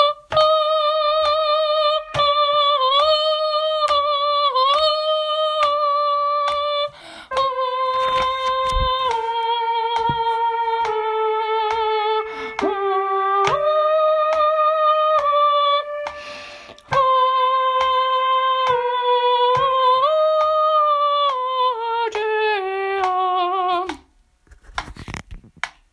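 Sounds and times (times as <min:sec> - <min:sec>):
soprano singing: 0:00.0 - 0:24.1.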